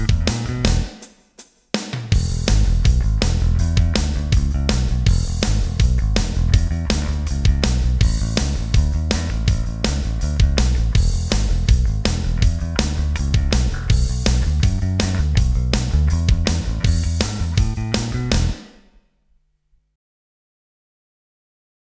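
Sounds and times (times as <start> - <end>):
guitar backing track playback: 0.0 - 0.9, 2.2 - 18.6.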